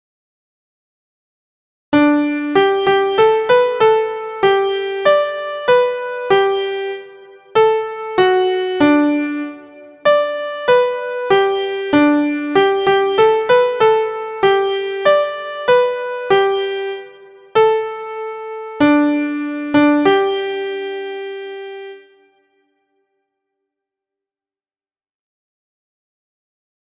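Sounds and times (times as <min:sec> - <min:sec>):
MIDI music: 0:02.0 - 0:22.4.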